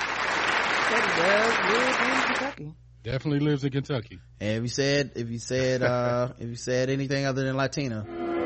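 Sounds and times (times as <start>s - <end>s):
applause sound effect: 0.0s - 2.6s
speech: 0.9s - 8.3s.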